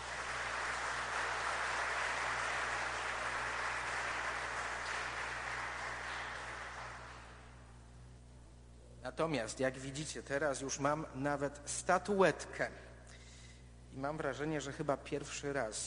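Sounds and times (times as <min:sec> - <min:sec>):
audience applause: 0:00.0 - 0:07.5
speech: 0:09.0 - 0:12.9, 0:14.0 - 0:15.8.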